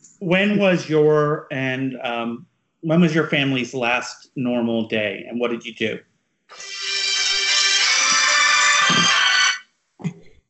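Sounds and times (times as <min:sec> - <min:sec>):
speech: 0:00.2 - 0:06.8
backup phone ringing with electronic ringtone: 0:06.5 - 0:09.6.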